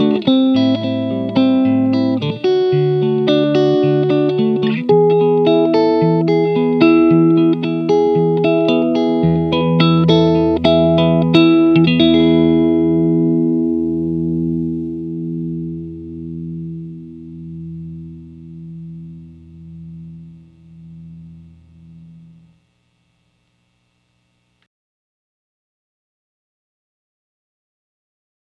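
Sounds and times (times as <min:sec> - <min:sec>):
Stratocaster electric guitar played with fingers: 0:00.0 - 0:22.7.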